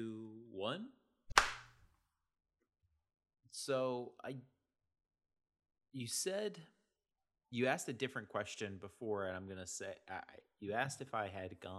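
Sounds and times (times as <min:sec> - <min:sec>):
hands clapping: 0:01.3 - 0:01.8
speech: 0:03.6 - 0:04.6, 0:06.0 - 0:06.8, 0:07.5 - 0:11.7.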